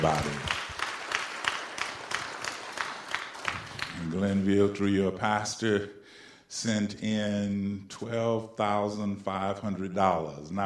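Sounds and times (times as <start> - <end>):
speech: 0.0 - 0.5, 4.0 - 10.6
audience applause: 0.0 - 4.2.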